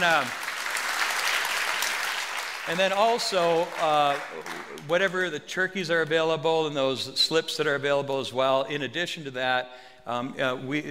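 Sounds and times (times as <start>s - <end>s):
speech: 0.0s - 0.4s, 2.6s - 10.8s
church congregation clapping hands for the Lord: 0.0s - 5.4s.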